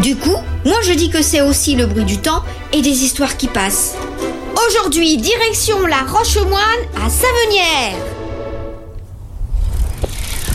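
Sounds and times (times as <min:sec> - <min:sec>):
speech: 0:00.0 - 0:08.2
bicycle rumbling and rattling on the Loire towpath near Savennières: 0:09.0 - 0:10.5.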